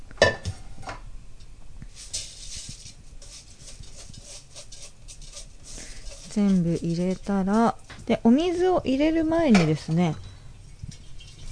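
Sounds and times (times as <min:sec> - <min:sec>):
rice grains poured into a rice cooker's inner pot: 0:01.8 - 0:07.2
speech: 0:06.4 - 0:10.2.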